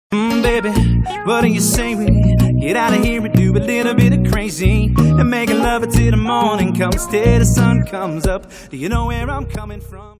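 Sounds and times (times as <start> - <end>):
ringtone: 0.3 - 8.4.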